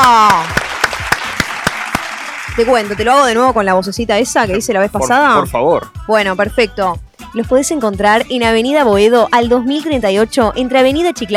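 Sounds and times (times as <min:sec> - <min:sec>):
steady clapping: 0:00.0 - 0:03.2
speech: 0:02.6 - 0:11.3.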